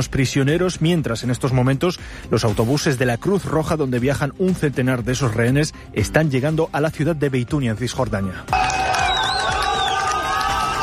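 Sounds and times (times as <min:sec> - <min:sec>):
speech: 0:00.0 - 0:08.8
crowd ovation: 0:08.5 - 0:10.8.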